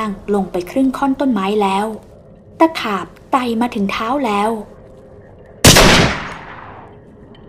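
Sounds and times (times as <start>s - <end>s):
speech: 0.0s - 4.8s
rifle gunshot: 5.6s - 6.9s.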